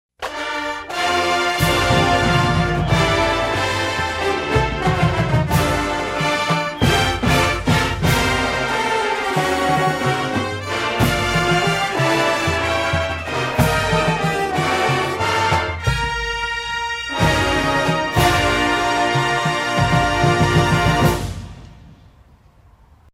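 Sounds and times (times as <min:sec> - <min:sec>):
fanfare: 0:00.2 - 0:21.8.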